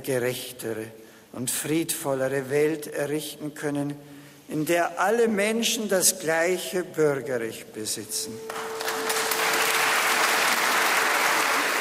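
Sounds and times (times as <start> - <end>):
speech: 0.0 - 8.6
applause in Cologne: 8.5 - 11.7.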